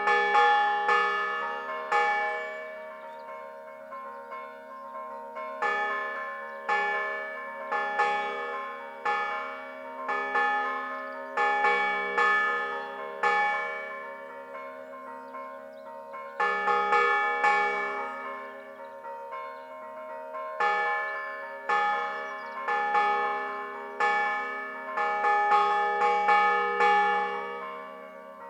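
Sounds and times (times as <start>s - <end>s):
church bells ringing in San Gregorio di Stellanello, Liguria: 0.0s - 28.4s.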